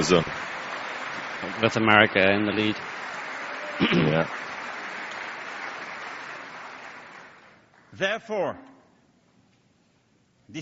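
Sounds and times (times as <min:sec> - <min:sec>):
speech: 0:00.0 - 0:00.4, 0:01.4 - 0:02.9, 0:03.8 - 0:04.4, 0:08.0 - 0:08.7
standing ovation applause in a congressional chamber: 0:00.0 - 0:08.2.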